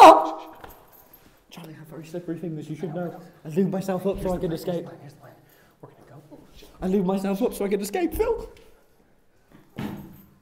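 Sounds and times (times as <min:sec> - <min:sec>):
speech: 0:01.6 - 0:06.0, 0:06.8 - 0:08.6
door: 0:09.6 - 0:10.3.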